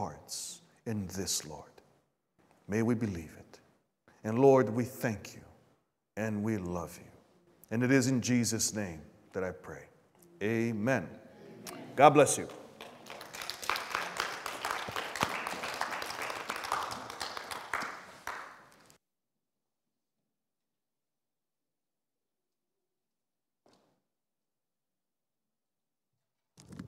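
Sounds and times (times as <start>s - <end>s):
speech: 0.0s - 1.8s, 2.7s - 3.6s, 4.2s - 5.5s, 6.2s - 7.1s, 7.7s - 12.6s
crowd clapping: 11.7s - 19.0s.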